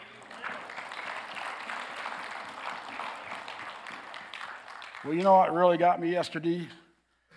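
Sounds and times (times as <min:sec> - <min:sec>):
audience applause: 0:00.0 - 0:05.8
speech: 0:05.0 - 0:06.8.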